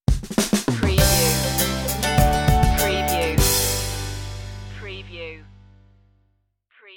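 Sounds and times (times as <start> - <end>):
music stinger: 1.0 - 6.0.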